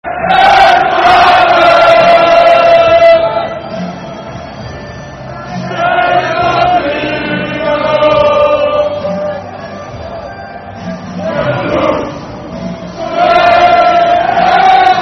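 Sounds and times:
football crowd chanting a soccer song in the Netherlands: 0.0s - 3.8s, 5.3s - 9.5s, 11.2s - 15.0s.

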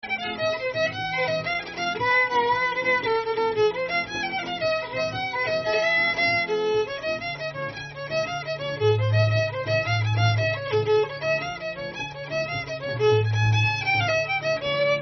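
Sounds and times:
jig in F and D minor in 6/8: 0.0s - 15.0s.

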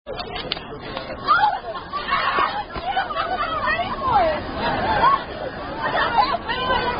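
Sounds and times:
hands clapping in a clapping game: 0.2s - 1.1s
laughter: 0.3s - 6.9s.

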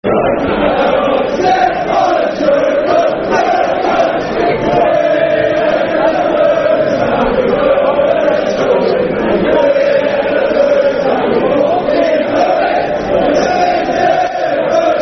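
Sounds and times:
football crowd chanting: 0.0s - 15.0s.

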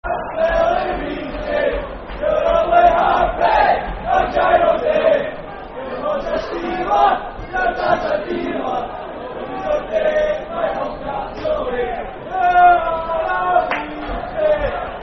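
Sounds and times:
football chant: 0.0s - 15.0s.

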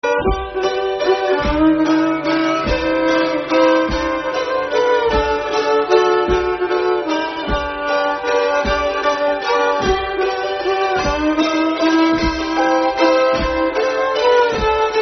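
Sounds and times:
waltz in G: 0.0s - 15.0s.

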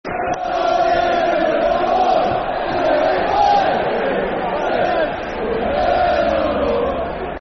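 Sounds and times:
football crowd chanting: 0.1s - 7.3s.

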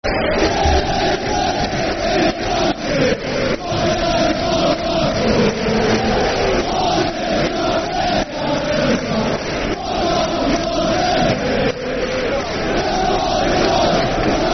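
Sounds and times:
football crowd chanting: 0.0s - 14.5s.

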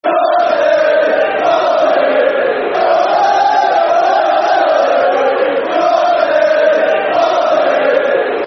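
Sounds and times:
football crowd chanting: 0.0s - 8.4s.

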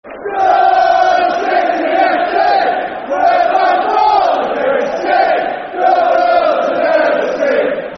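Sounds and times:
football crowd chanting: 0.1s - 7.9s.

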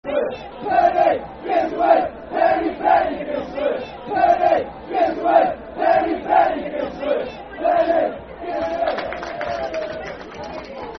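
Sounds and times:
football crowd chanting: 0.1s - 9.1s.

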